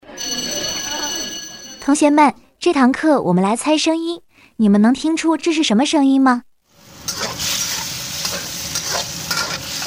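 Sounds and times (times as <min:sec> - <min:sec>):
speech: 0:01.8 - 0:06.5
breakfast sizzling in a frying pan: 0:06.7 - 0:09.8
stirring and scraping strokes in a frying pan: 0:07.1 - 0:09.8.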